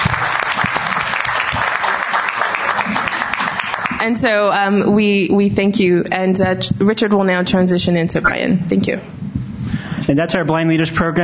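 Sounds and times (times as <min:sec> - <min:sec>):
room full of people applauding: 0:00.0 - 0:04.4
speech: 0:04.0 - 0:09.3, 0:10.1 - 0:11.2.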